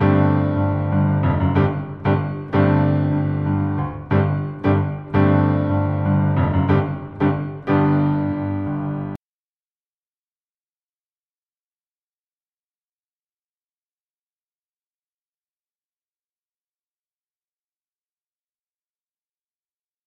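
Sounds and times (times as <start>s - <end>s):
meditative piano: 0.0s - 9.2s.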